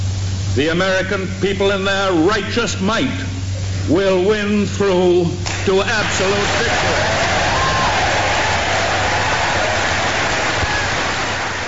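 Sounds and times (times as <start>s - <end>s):
speech: 0.6s - 7.3s
applause from a joint session of Congress: 5.5s - 11.6s.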